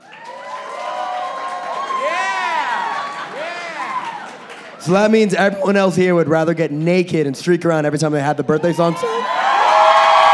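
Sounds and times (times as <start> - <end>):
clapping: 0.0 - 4.8
crowd cheering and whooping: 0.0 - 5.8, 8.6 - 10.3
speech: 4.8 - 9.3.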